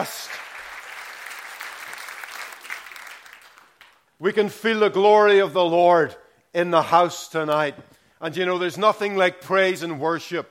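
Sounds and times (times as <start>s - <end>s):
speech: 0.0s - 0.3s, 4.2s - 10.4s
round of applause: 0.0s - 4.2s.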